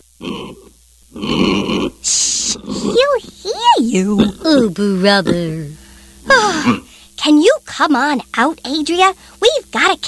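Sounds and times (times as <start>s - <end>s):
pig grunting: 0.0s - 5.6s, 6.4s - 6.9s
speech: 3.8s - 10.0s.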